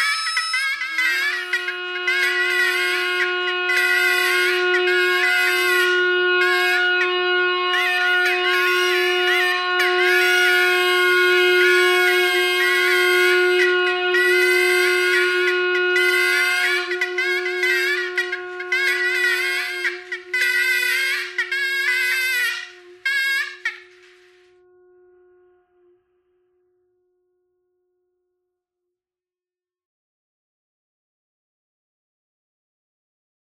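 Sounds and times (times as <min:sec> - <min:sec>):
bagpipe: 0:00.0 - 0:26.4.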